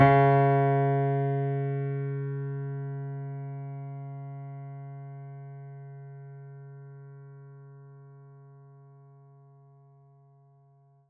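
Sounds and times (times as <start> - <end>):
mini grand piano: 0.0 - 7.9.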